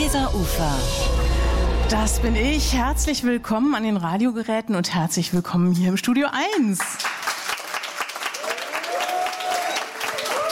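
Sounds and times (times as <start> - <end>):
speech: 0.0 - 7.1
studio audience applauding: 6.8 - 10.4
high whoops or cheers: 8.4 - 10.4.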